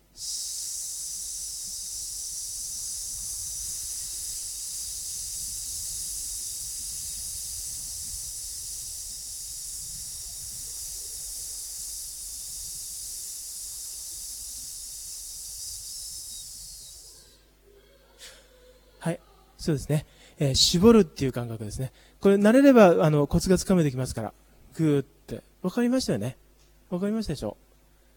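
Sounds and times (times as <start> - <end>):
forceful hissing exhalation during an abdominal breathing exercise: 0.0 - 17.4
speech: 19.0 - 27.7.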